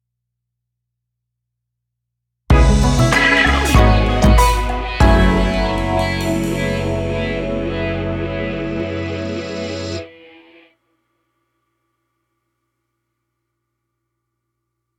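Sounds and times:
funk music: 2.5 - 10.1.

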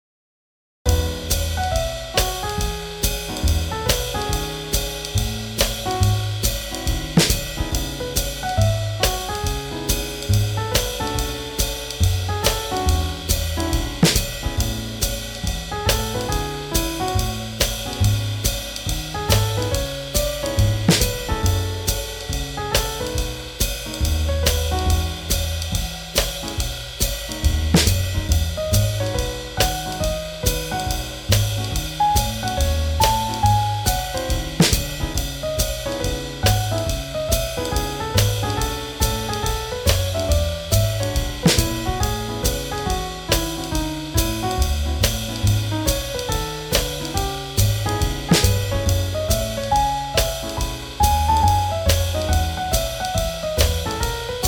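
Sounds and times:
swing jazz: 0.9 - 54.4.

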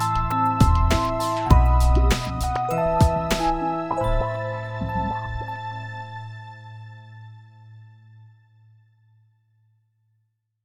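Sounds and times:
sad music: 0.0 - 8.1.

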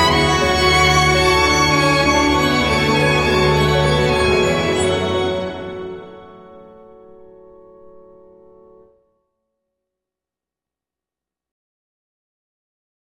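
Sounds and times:
orchestral dance music: 0.0 - 6.8.

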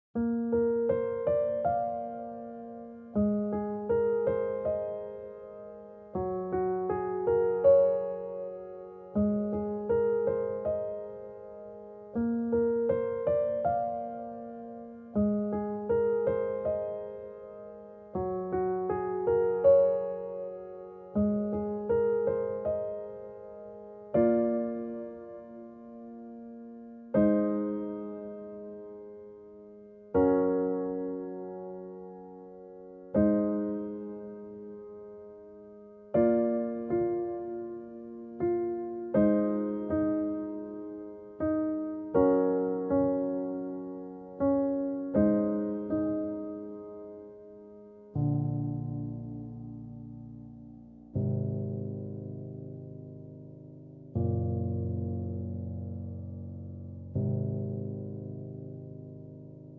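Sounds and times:
piano: 0.0 - 59.7.

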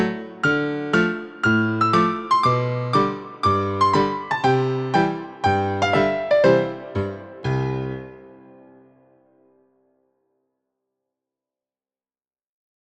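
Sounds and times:
new age music: 0.0 - 9.6.

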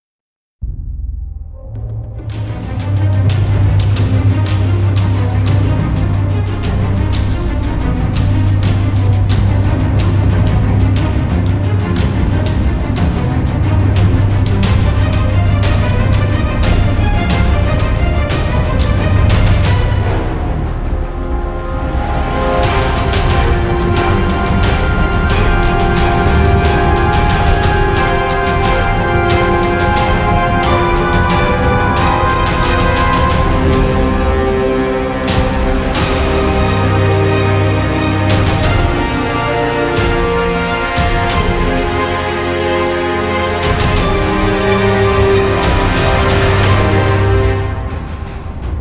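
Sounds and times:
tense taiko drums: 0.6 - 48.7.

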